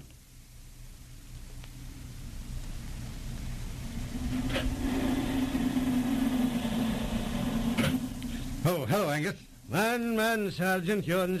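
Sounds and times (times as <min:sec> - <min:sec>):
blizzard wind howling outside a cabin: 0:02.9 - 0:08.7
speech: 0:08.7 - 0:11.3.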